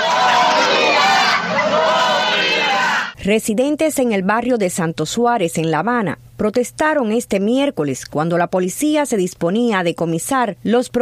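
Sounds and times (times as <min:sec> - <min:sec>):
protesting neighbours in Santo Suárez, Havana shouting for food: 0:00.0 - 0:03.2
speech: 0:03.2 - 0:10.9.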